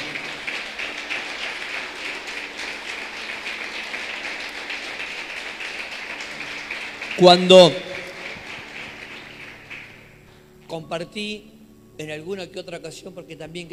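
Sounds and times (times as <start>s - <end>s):
audience applauding: 0.0s - 10.3s
speech: 7.2s - 7.9s, 10.7s - 13.7s.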